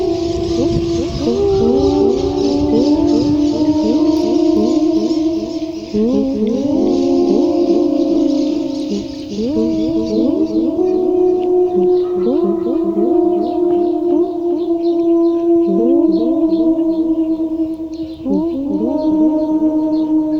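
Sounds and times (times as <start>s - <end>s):
songbirds singing: 0.0s - 20.3s.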